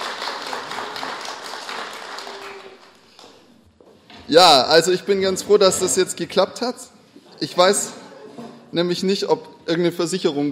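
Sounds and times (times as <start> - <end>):
applause: 0.0 - 3.5
speech: 4.3 - 8.0, 8.7 - 10.5.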